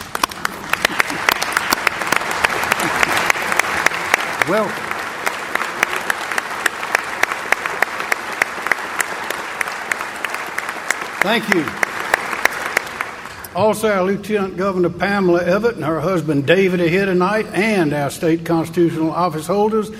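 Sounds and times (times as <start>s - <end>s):
audience applause at a formal evening address: 0.0s - 13.6s
speech: 4.5s - 4.8s, 11.2s - 11.8s, 13.6s - 19.9s.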